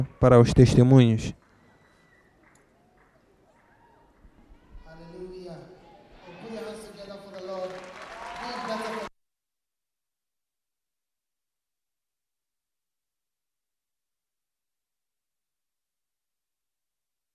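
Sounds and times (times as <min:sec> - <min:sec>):
speech: 0:00.0 - 0:01.4
clapping: 0:01.4 - 0:04.3, 0:07.0 - 0:09.1.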